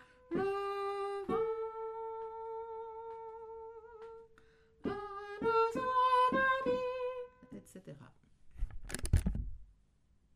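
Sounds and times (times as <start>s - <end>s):
soprano singing: 0.0s - 7.6s.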